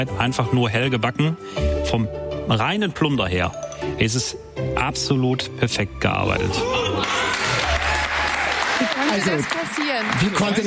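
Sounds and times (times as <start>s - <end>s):
speech: 0.0s - 7.2s, 9.1s - 10.6s
applause: 7.0s - 10.6s.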